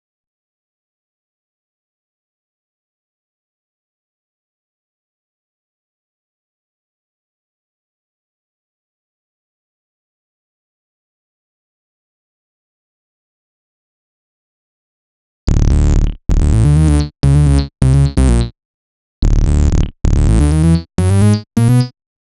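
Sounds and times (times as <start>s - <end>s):
128bpm bass line: 15.5s - 18.5s, 19.2s - 21.9s.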